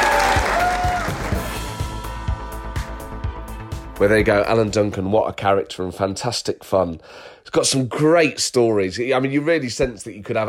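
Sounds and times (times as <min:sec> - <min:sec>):
live audience applause: 0:00.0 - 0:01.7
live audience cheering: 0:00.0 - 0:02.0
speech: 0:04.0 - 0:10.4.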